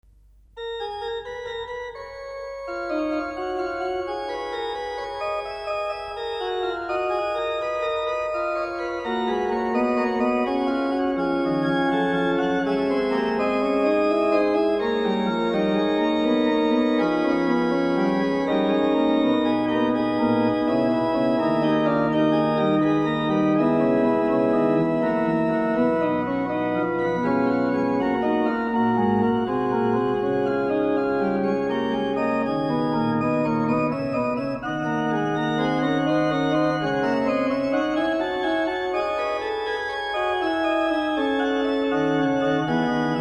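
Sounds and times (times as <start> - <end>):
organ mass music: 0.6 - 43.1.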